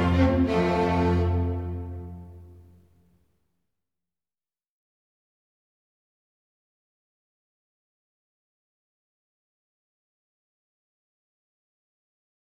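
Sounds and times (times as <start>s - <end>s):
orchestra playing presto: 0.0s - 2.6s.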